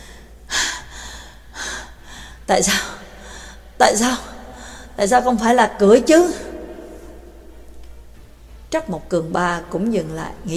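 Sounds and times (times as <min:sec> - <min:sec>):
person panting heavily out of breath: 0:00.0 - 0:03.8
speech: 0:02.5 - 0:03.0, 0:03.8 - 0:04.3, 0:05.0 - 0:06.5, 0:08.7 - 0:10.5.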